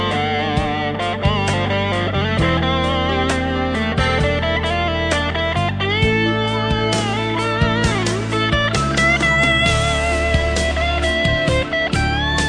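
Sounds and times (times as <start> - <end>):
rock song: 0.0 - 12.4.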